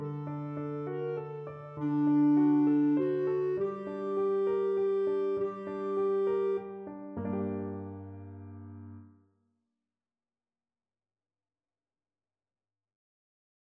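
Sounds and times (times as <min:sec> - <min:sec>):
clarinet: 0:00.0 - 0:09.1.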